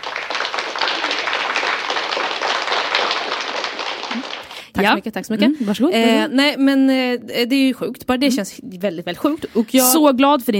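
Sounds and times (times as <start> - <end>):
applause sound effect: 0.0 - 4.8
speech: 4.8 - 10.5.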